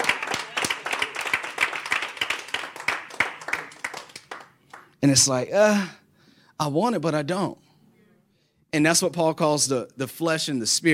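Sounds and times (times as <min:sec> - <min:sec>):
audience clapping: 0:00.0 - 0:05.0
speech: 0:05.0 - 0:06.0, 0:06.6 - 0:07.6, 0:08.7 - 0:10.9.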